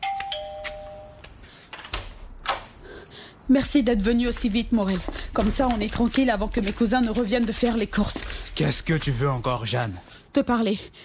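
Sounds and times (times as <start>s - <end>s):
apartment doorbell ringing with sustained electronic tones: 0.0s - 1.2s
speech: 3.5s - 11.0s.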